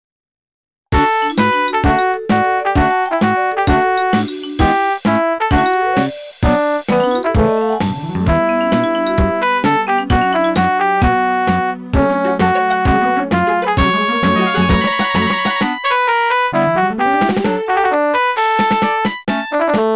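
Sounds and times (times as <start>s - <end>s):
melody: 1.0s - 6.3s, 6.9s - 19.8s.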